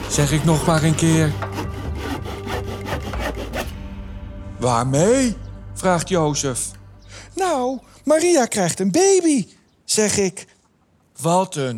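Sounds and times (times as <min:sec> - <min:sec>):
hand saw cutting through wood: 0:00.0 - 0:03.7
speech: 0:00.1 - 0:01.5, 0:04.6 - 0:06.8, 0:07.4 - 0:10.5, 0:11.2 - 0:11.7.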